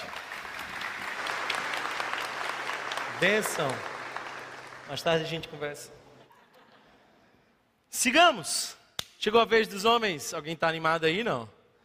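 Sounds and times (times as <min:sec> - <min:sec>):
audience applause: 0:00.0 - 0:05.7
speech: 0:03.2 - 0:03.9, 0:04.9 - 0:06.0, 0:07.9 - 0:11.6.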